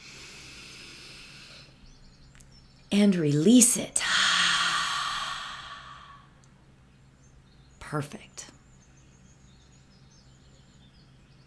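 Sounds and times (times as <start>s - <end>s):
deep breath in through the nose: 0.0s - 1.8s, 4.1s - 6.4s
speech: 2.9s - 4.1s, 7.9s - 8.5s.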